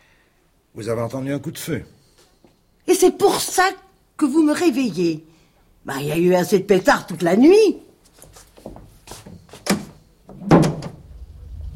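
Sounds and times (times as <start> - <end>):
speech: 0.8 - 2.0, 3.0 - 7.8
doors being opened: 9.6 - 11.2.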